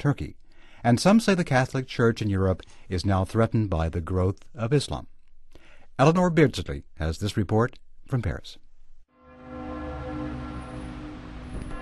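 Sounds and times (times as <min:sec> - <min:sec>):
speech: 0:00.0 - 0:05.1, 0:06.0 - 0:08.6
church bells ringing: 0:09.4 - 0:11.8.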